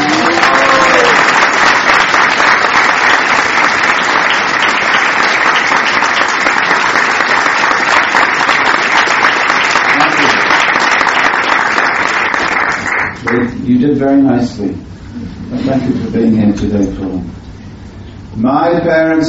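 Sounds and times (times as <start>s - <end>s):
audience applause: 0.0s - 13.5s
speech: 13.8s - 14.9s, 15.6s - 17.4s, 18.3s - 19.2s.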